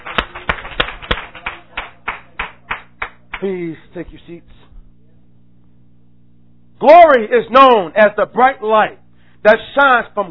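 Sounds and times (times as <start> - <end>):
audience clapping hands: 0.0 - 3.6
speech: 3.4 - 4.7, 6.8 - 10.3.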